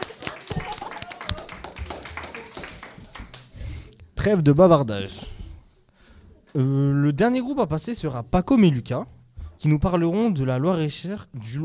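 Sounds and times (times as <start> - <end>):
applause: 0.0 - 3.8
speech: 4.2 - 5.3, 6.6 - 11.6.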